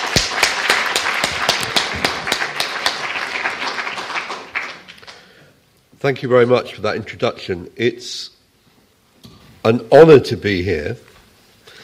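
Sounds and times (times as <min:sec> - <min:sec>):
audience applause: 0:00.0 - 0:05.4
speech: 0:06.0 - 0:08.4, 0:09.6 - 0:11.1.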